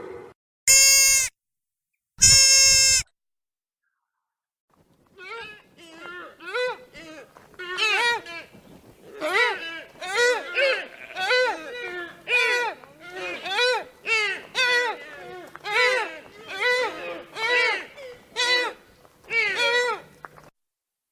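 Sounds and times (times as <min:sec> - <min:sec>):
deer call: 0:00.7 - 0:01.3, 0:02.2 - 0:03.0, 0:05.2 - 0:08.6, 0:09.1 - 0:20.2.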